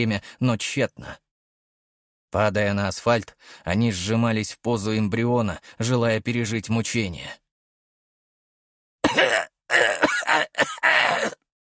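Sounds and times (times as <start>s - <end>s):
speech: 0.0s - 1.2s, 2.3s - 7.4s
old man coughing: 9.0s - 11.4s.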